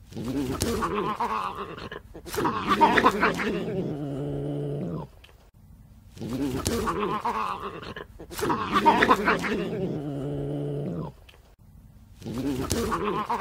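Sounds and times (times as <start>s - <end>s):
Eurasian badger growling: 0.0s - 5.2s, 6.1s - 11.4s, 12.2s - 13.3s
speech: 0.9s - 4.0s, 6.3s - 10.0s, 12.2s - 13.3s.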